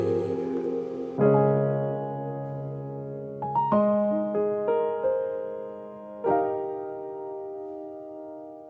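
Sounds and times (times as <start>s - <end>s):
acoustic music: 0.0s - 5.2s.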